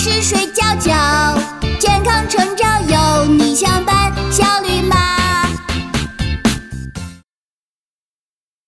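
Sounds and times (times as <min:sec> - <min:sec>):
woman singing with reverb: 0:00.0 - 0:05.7.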